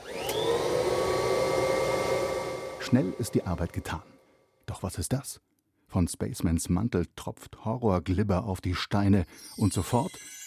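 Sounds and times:
vacuum cleaner sucking: 0.0 - 4.0
speech: 2.8 - 10.4.

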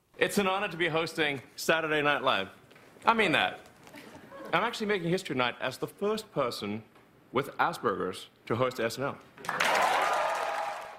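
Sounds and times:
speech: 0.2 - 3.7, 4.5 - 9.7
audience cheering: 9.4 - 10.9.

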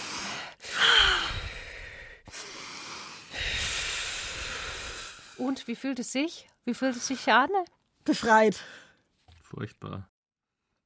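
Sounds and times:
deep breathing in and out: 0.0 - 5.4
speech: 5.4 - 8.8, 9.5 - 10.1.

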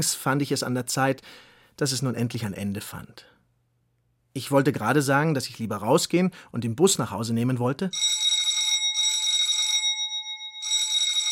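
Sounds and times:
speech: 0.0 - 3.4, 4.4 - 8.2
doorbell ringing insistently: 8.0 - 11.2.

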